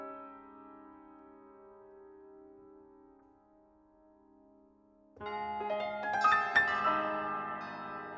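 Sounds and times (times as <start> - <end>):
bells: 5.2 - 8.1.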